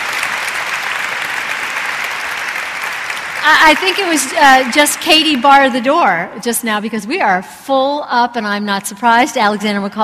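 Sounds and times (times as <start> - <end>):
audience applause: 0.0 - 5.4
speech: 3.4 - 10.0.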